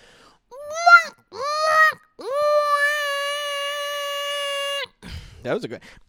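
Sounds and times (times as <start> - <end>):
voice imitating a seagull call: 0.6 - 4.9
speech: 5.4 - 6.0.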